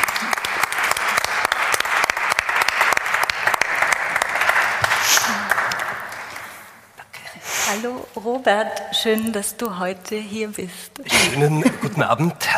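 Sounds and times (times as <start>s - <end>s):
audience applause: 0.0s - 6.7s
speech: 7.8s - 12.5s.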